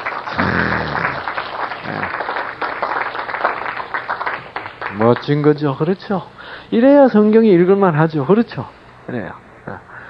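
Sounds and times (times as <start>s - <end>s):
audience applause: 0.0s - 5.6s
speech: 5.0s - 9.4s.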